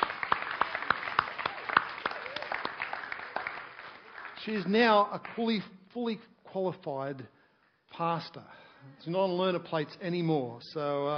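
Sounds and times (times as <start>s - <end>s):
audience clapping: 0.0s - 5.7s
speech: 4.4s - 11.1s.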